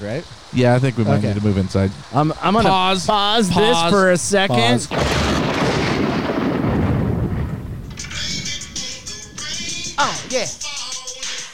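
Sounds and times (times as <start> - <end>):
speech: 0.0 - 5.3, 10.0 - 10.7
heavy rain: 0.0 - 11.5
thunder rumbling: 2.4 - 10.8.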